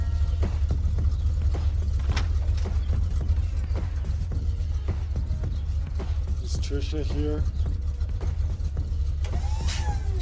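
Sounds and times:
car pulling into a driveway with a low engine rumble: 0:00.0 - 0:10.2
speech: 0:06.7 - 0:07.7.

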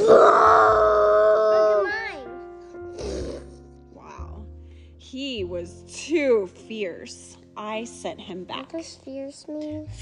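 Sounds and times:
child breathy growling: 0:00.0 - 0:02.3, 0:02.9 - 0:03.6
child imitating a lion roar: 0:00.0 - 0:02.3
speech: 0:05.6 - 0:10.0.

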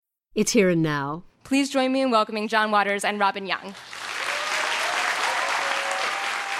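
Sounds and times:
speech: 0:00.4 - 0:03.9
audience applause: 0:03.8 - 0:06.5.

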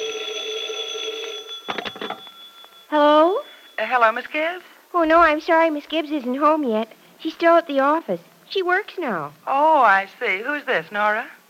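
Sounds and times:
telephone ringing with a high electronic trill: 0:00.0 - 0:04.6
speech: 0:02.9 - 0:11.4.

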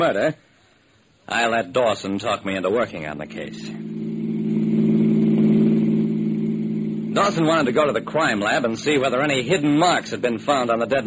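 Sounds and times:
speech: 0:00.0 - 0:00.5, 0:01.3 - 0:03.8, 0:07.2 - 0:11.0
car engine humming while driving: 0:03.2 - 0:10.0.

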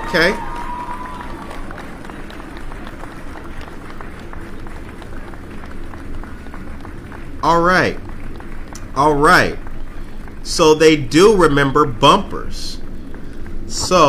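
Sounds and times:
clapping sound effect: 0:00.0 - 0:10.7
speech: 0:00.1 - 0:00.5, 0:07.4 - 0:08.0, 0:09.0 - 0:09.6, 0:10.4 - 0:12.8, 0:13.7 - 0:14.0.

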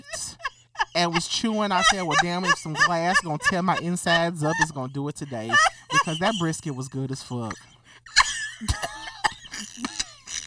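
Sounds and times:
laughter: 0:00.0 - 0:10.4
speech: 0:01.0 - 0:07.7, 0:08.6 - 0:08.9
person coughing and choking: 0:08.6 - 0:10.4.

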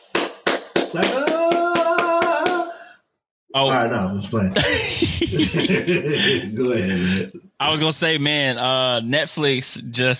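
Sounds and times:
slow clap: 0:00.0 - 0:02.8
speech: 0:00.9 - 0:01.2, 0:03.6 - 0:10.1
laughter: 0:04.5 - 0:07.3.

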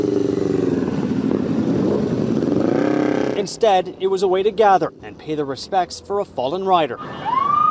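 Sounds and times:
motorcycle engines of over 300 bikers on a memorial ride: 0:00.0 - 0:07.6
speech: 0:03.5 - 0:07.3.

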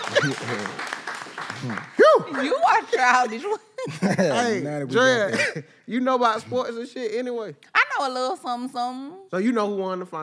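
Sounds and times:
laughter: 0:00.0 - 0:00.8, 0:01.6 - 0:05.6
audience clapping for two performers: 0:00.0 - 0:03.2
speech: 0:00.2 - 0:00.9, 0:01.6 - 0:10.2.

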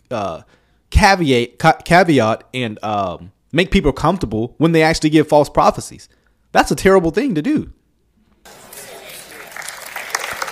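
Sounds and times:
speech: 0:00.1 - 0:07.8
audience cheering and applauding: 0:08.5 - 0:10.5.

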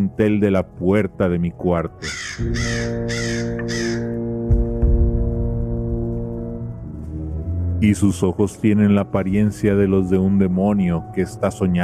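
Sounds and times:
speech: 0:00.0 - 0:03.8, 0:07.8 - 0:11.8
raven cawing: 0:02.0 - 0:04.3
soft low thumps: 0:04.3 - 0:06.7.

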